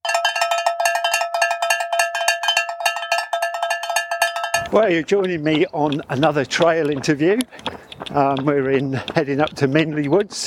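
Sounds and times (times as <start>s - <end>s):
cowbells ringing: 0.0s - 6.1s
speech: 4.7s - 10.4s.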